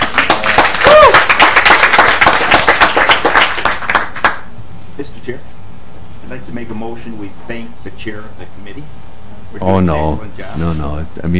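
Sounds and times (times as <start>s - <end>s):
audience round of applause: 0.0s - 4.4s
speech: 6.6s - 11.3s.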